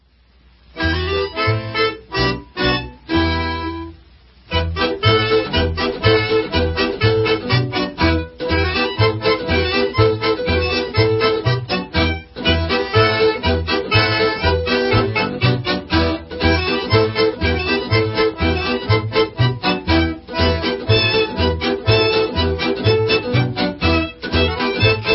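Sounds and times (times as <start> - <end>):
hora debka folk instrumental: 0.8 - 25.1.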